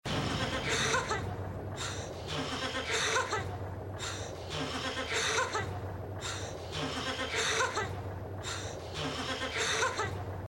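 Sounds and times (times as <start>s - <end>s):
nervous laugh: 0.1s - 10.2s.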